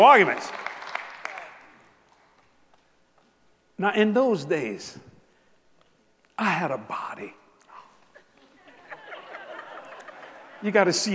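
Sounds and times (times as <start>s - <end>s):
speech: 0.0s - 0.6s, 3.8s - 5.1s, 6.4s - 7.4s, 10.6s - 11.1s
audience applause: 0.0s - 1.8s
laughter: 8.2s - 11.1s.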